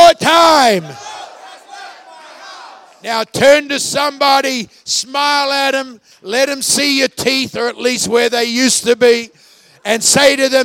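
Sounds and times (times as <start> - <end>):
speech: 0.1 - 1.1, 3.0 - 10.6
large audience shouting in unison: 0.7 - 3.0.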